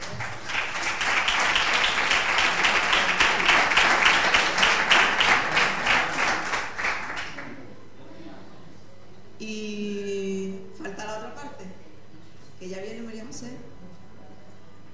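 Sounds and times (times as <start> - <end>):
audience applause at a neighbourhood association gathering: 0.0 - 7.7.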